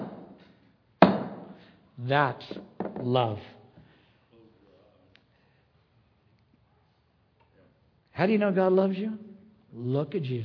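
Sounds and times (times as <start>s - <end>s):
hammer driving nails into wooden cross: 0.0s - 0.4s, 1.0s - 1.6s
speech: 2.0s - 3.6s, 8.2s - 10.4s.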